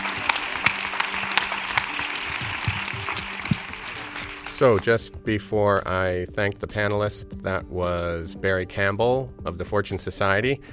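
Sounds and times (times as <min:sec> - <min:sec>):
audience applause: 0:00.0 - 0:04.9
speech: 0:04.6 - 0:10.7.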